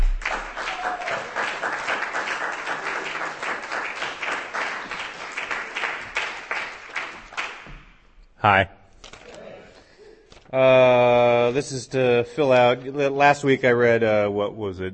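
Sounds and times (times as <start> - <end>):
audience applause at a poetry reading: 0.0 - 7.7
speech: 8.4 - 8.8, 10.5 - 14.9.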